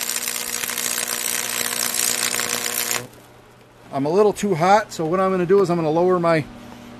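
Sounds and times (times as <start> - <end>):
welding two pieces of steel together: 0.0 - 3.2
speech: 3.9 - 6.6.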